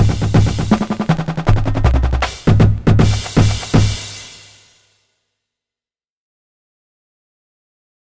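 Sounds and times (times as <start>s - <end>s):
drumline playing long tones: 0.0s - 4.1s.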